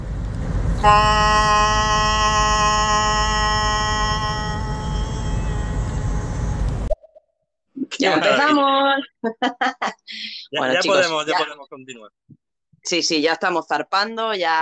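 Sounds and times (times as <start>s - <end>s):
low rumbling noise: 0.0s - 7.0s
horn blast: 0.6s - 6.9s
speech: 0.8s - 1.6s, 8.0s - 14.6s
laughter: 7.9s - 11.6s.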